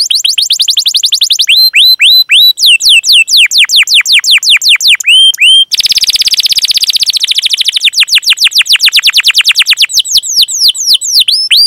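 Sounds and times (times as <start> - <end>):
canary singing vigorously with full repertoire: 0.0 - 11.6.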